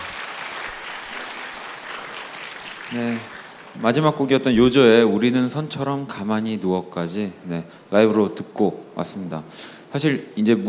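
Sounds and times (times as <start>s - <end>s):
audience applause: 0.0s - 4.0s
speech: 2.9s - 10.6s.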